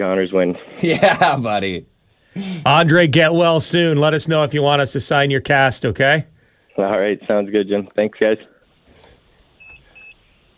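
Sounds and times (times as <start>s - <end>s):
speech: 0.0s - 8.5s
laughter: 0.7s - 1.8s
hospital monitor beeping: 9.6s - 10.5s.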